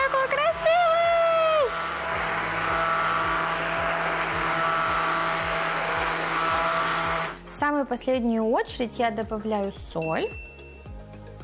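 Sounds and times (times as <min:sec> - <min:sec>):
kitchen blender blending food: 0:00.0 - 0:07.8
speech: 0:07.7 - 0:10.4.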